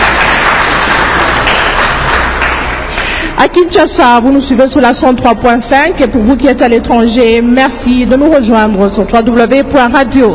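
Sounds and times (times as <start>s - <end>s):
audience applause in a hall: 0.0s - 3.4s
speech: 3.4s - 10.3s.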